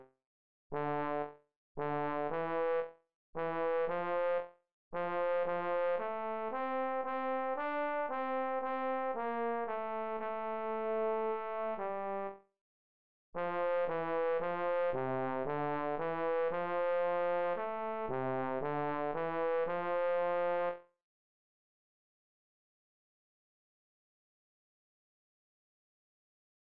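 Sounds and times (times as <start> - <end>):
slow lyrical tenor trombone etude in C: 0.8 - 4.4, 5.0 - 12.4, 13.4 - 20.8.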